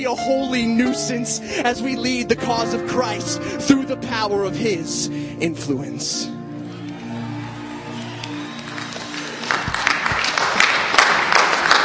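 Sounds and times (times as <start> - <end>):
speech: 0.0 - 6.4
feeble audience applause: 8.1 - 11.8.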